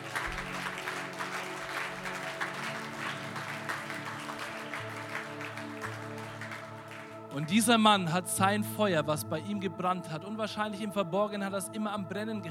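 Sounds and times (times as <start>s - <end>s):
audience applause: 0.0s - 7.8s
speech: 7.4s - 12.4s.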